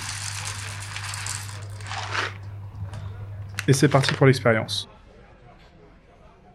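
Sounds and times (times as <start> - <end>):
coffee grinder grinding beans: 0.0 - 4.2
speech: 3.7 - 4.9.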